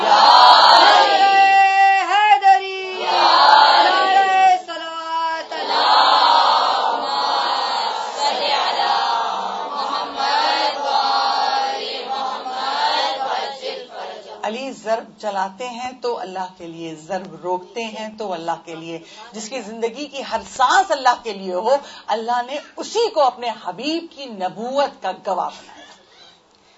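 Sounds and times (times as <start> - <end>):
large crowd chanting a religious slogan in unison: 0.0 - 14.5
speech: 15.0 - 25.9.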